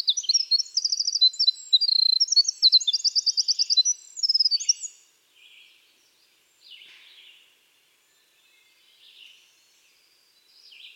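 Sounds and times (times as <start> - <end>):
winter wren Troglodytes hiemalis singing trills: 0.0 - 5.0.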